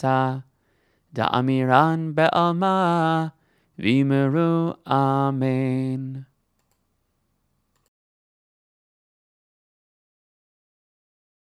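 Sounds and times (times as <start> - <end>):
prayer chant: 0.0 - 6.4.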